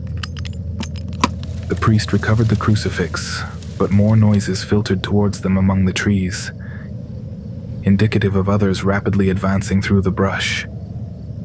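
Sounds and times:
bells around its neck jingling: 0.1s - 4.0s
speech: 1.9s - 6.6s, 7.8s - 10.7s.

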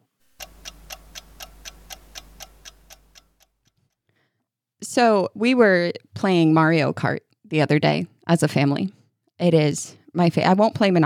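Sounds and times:
timer ticking: 0.3s - 3.8s
speech: 5.0s - 11.0s.

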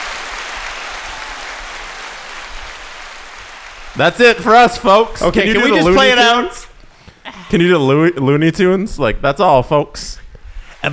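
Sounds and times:
looping applause sound effect: 0.0s - 6.6s
speech: 4.0s - 6.7s, 7.5s - 10.2s.

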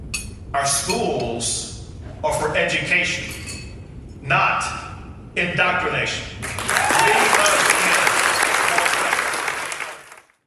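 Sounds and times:
speech: 0.5s - 3.4s, 4.2s - 4.8s, 5.4s - 7.6s
audience applause at a political event: 6.4s - 10.4s.

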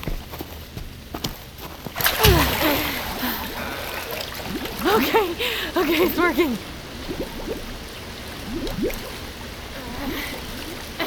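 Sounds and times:
water filling a container: 2.0s - 9.7s
speech: 5.0s - 7.2s.

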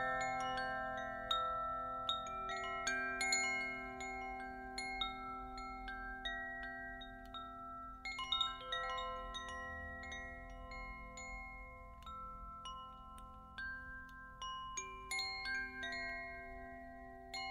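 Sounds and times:
Koshi chimes strikes: 0.0s - 17.5s
singing bowls ringing: 0.0s - 17.5s.

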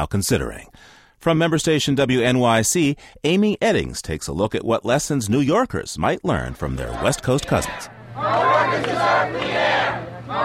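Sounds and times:
speech: 0.0s - 10.4s
crowd shouting and cheering at a public hearing: 6.6s - 10.4s.

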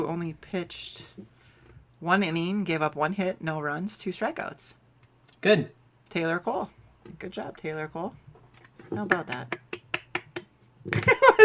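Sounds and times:
speech: 0.0s - 1.3s, 2.0s - 4.8s, 5.4s - 8.2s, 8.9s - 9.6s, 10.8s - 11.4s
hand clapping: 9.0s - 11.2s.

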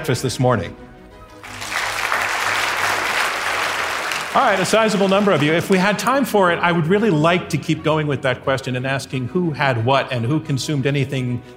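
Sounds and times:
speech: 0.0s - 0.9s, 4.4s - 11.5s
audience applause: 1.4s - 5.8s.

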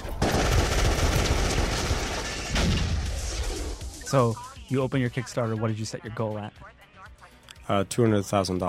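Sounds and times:
gunfire in a game trailer: 0.2s - 3.6s
speech: 4.1s - 6.8s, 7.7s - 8.6s.

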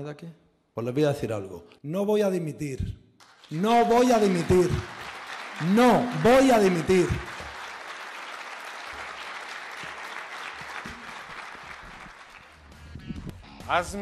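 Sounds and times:
speech: 0.0s - 5.0s, 5.6s - 7.3s, 13.7s - 14.0s
crowd applauding: 3.2s - 12.9s.

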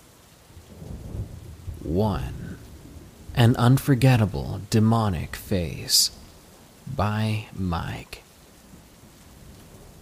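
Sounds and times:
rain falling: 0.0s - 10.0s
speech: 1.9s - 2.4s, 3.4s - 6.2s, 6.9s - 8.2s.

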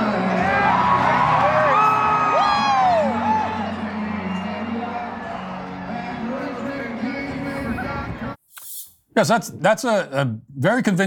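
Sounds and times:
concert audience cheering and whooping: 0.2s - 7.7s
shouts and yells: 0.2s - 7.9s
speech: 9.2s - 11.0s.

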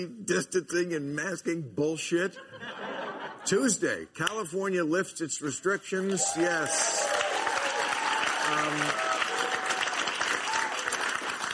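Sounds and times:
speech: 0.0s - 7.2s, 8.5s - 9.0s
laughter: 2.4s - 3.7s
crowd applauding: 6.0s - 11.5s
scattered cheers: 6.1s - 11.2s.

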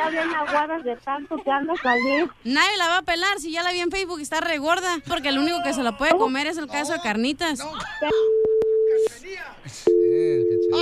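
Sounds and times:
people talking loudly: 0.0s - 7.8s
speech: 0.1s - 10.8s
phone line busy tone after a hang-up: 9.9s - 10.8s.

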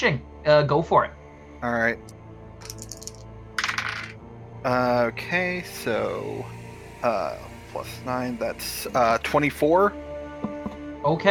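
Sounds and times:
speech: 0.0s - 2.2s, 4.6s - 10.0s, 11.0s - 11.3s
dice clattering across a hard table: 2.6s - 4.2s.

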